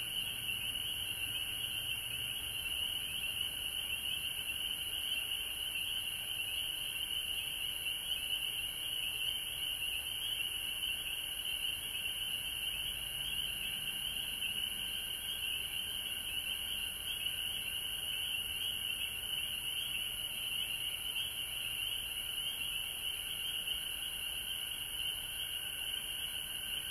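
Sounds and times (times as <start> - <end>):
massed frogs trilling chorus: 0.0 - 26.8.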